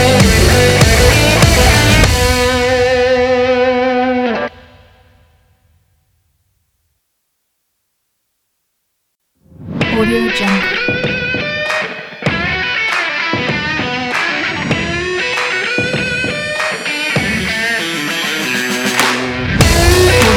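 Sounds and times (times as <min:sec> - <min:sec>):
sport game big beat trailer music with guitar: 0:00.0 - 0:04.6, 0:10.4 - 0:20.3.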